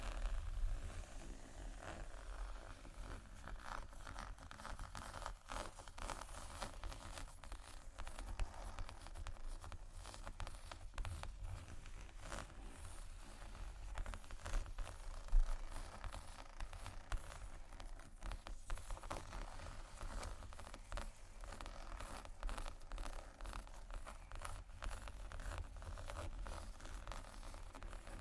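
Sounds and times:
fingers tapping and scratching leather bags: 0:00.0 - 0:28.1.

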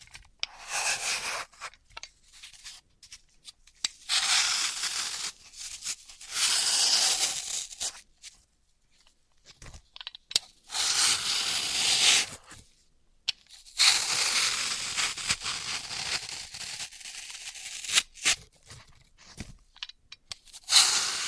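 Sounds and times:
dry and wet floral foam cutting and crushing: 0:00.5 - 0:01.8, 0:04.0 - 0:08.0, 0:10.6 - 0:12.6, 0:13.6 - 0:18.6, 0:20.5 - 0:21.2.

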